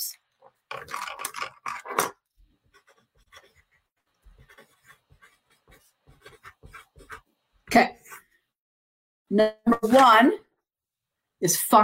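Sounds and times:
pen strokes jotting notes down by hand: 2.6s - 7.3s
speech: 7.8s - 8.0s, 9.3s - 10.4s, 11.4s - 11.8s.

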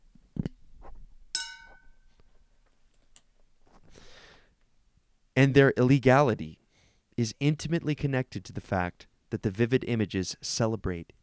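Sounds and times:
soft rustling: 0.0s - 4.2s
hand bell ringing: 1.4s - 2.0s
speech: 5.4s - 6.6s, 7.2s - 11.2s.

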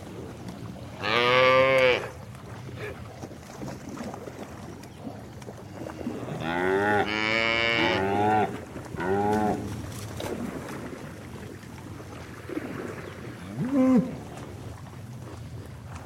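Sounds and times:
cow mooing: 1.0s - 2.1s, 6.3s - 9.6s, 13.5s - 14.2s.

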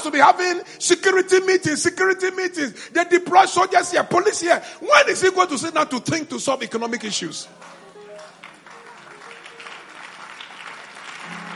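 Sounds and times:
speech: 0.0s - 7.8s
audience clapping: 7.5s - 11.5s.

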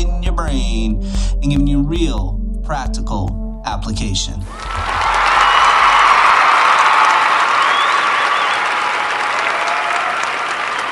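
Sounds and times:
speech: 0.4s - 4.9s
in-studio audience applause: 4.5s - 10.9s.

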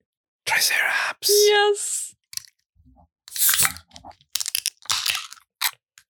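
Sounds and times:
speech: 0.6s - 2.2s
something cracking open: 3.3s - 5.8s.

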